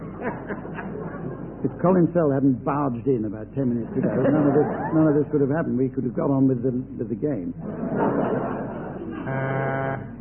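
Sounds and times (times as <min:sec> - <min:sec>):
laughter: 0:00.0 - 0:01.7, 0:03.7 - 0:05.6, 0:07.6 - 0:10.1
speech: 0:00.2 - 0:08.6, 0:09.3 - 0:10.1
buzzer sounding like a thick horn: 0:09.3 - 0:10.1.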